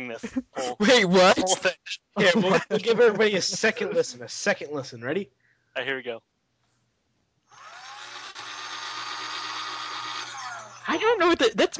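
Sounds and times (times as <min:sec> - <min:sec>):
speech: 0:00.0 - 0:06.3, 0:10.9 - 0:11.7
laughter: 0:00.2 - 0:04.4
power saw running: 0:07.5 - 0:11.0.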